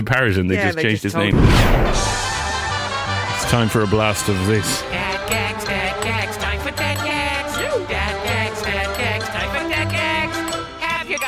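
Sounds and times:
speech: 0.0s - 2.3s, 3.5s - 5.6s
bell ringing: 4.2s - 11.2s.

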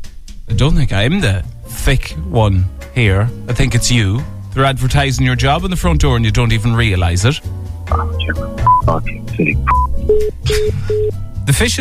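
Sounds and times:
speech: 0.6s - 11.8s
telephone keypad tones dialing a number: 7.9s - 10.3s.

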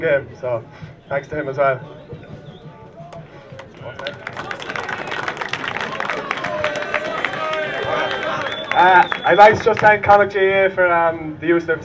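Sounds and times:
speech: 0.0s - 2.1s, 3.8s - 4.6s, 8.7s - 11.8s
applause: 3.1s - 10.1s.

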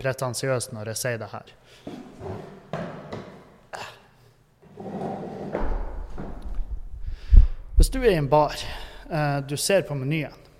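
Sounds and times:
speech: 0.0s - 2.5s, 7.8s - 10.4s
chair being turned: 1.9s - 3.3s, 4.6s - 6.6s.

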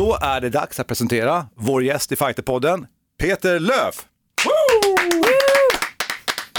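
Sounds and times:
speech: 0.1s - 4.5s
hands clapping to greet a guest in a training space: 4.4s - 6.5s.

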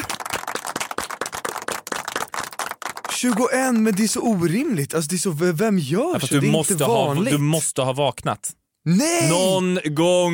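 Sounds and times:
applause: 0.0s - 4.8s
speech: 3.2s - 10.3s.

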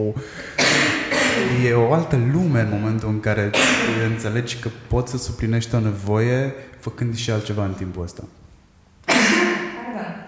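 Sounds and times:
speech: 0.0s - 8.4s
sneeze: 0.6s - 1.6s, 3.5s - 4.1s, 9.0s - 10.2s.

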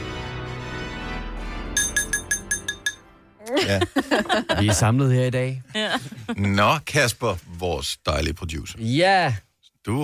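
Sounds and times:
low music-like tones: 0.0s - 4.8s
utensil tapping a glass for a toast: 1.8s - 3.0s
laughter: 3.4s - 5.1s, 5.7s - 6.8s
speech: 3.5s - 10.0s.

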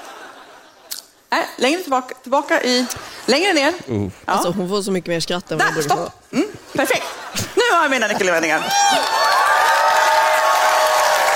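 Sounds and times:
speech: 1.4s - 9.3s
audience at Almedalen cheering: 8.6s - 11.3s.

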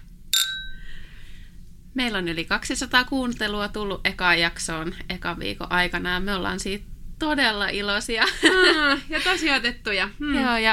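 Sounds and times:
sparkling wine glasses clinking in a toast: 0.4s - 1.0s
speech: 2.0s - 10.7s
laughter: 8.2s - 9.6s.

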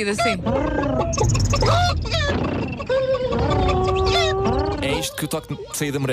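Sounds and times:
speech: 0.0s - 3.4s, 5.0s - 6.1s
people imitating growling, grunting and bird-like chirping animals: 0.0s - 6.1s.

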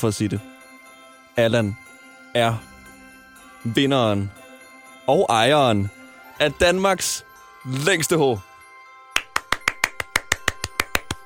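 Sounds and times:
speech: 0.0s - 0.5s, 1.4s - 2.7s, 3.6s - 4.4s, 5.1s - 8.5s
one person clapping alone in a studio: 9.2s - 11.2s.

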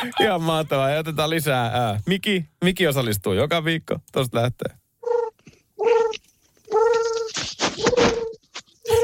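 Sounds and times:
speech: 0.2s - 4.8s
person imitating pigeon coos: 5.0s - 9.0s.

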